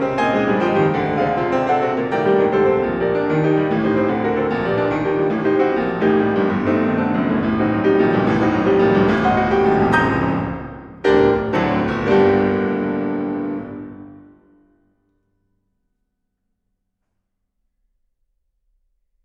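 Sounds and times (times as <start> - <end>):
classical prelude in G minor played molto agitato: 0.0 - 14.6.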